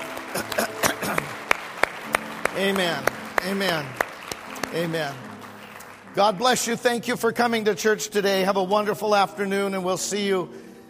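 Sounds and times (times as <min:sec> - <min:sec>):
church congregation applauding in praise of God: 0:00.0 - 0:08.9
speech: 0:02.6 - 0:04.0, 0:04.7 - 0:05.3, 0:06.1 - 0:10.6.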